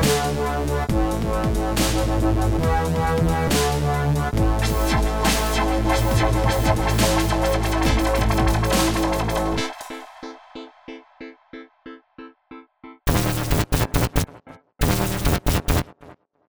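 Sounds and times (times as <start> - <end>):
dubstep music: 0.0 - 10.1, 13.1 - 16.1.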